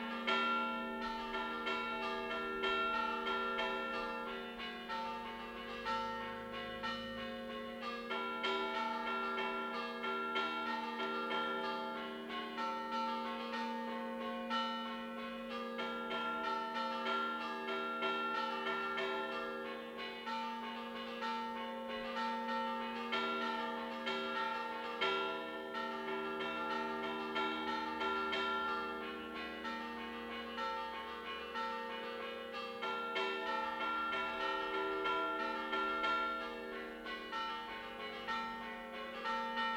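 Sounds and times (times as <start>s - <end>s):
bells ringing in Teviggio La Spezia Liguria: 0.0s - 39.7s.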